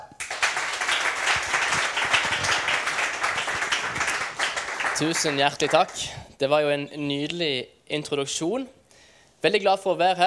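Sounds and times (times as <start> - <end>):
audience applause: 0.0 - 6.1
speech: 5.0 - 8.8, 9.4 - 10.2.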